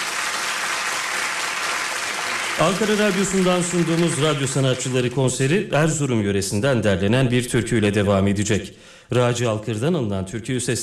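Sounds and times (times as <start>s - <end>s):
concert audience applause for women chorus singers: 0.0s - 5.5s
speech: 2.6s - 10.8s.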